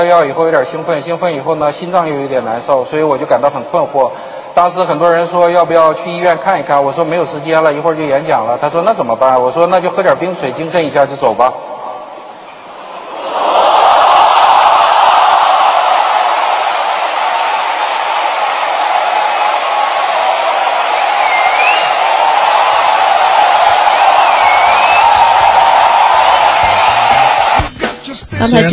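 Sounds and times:
speech: 0:00.0 - 0:11.8, 0:28.4 - 0:28.7
audience cheering: 0:12.7 - 0:28.7.

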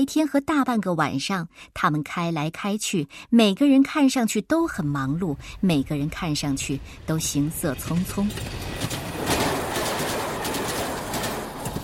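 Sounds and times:
speech: 0:00.0 - 0:09.0
elevated train running past overhead: 0:04.6 - 0:11.8
elevated train wheels clickety-clack: 0:07.8 - 0:11.8.

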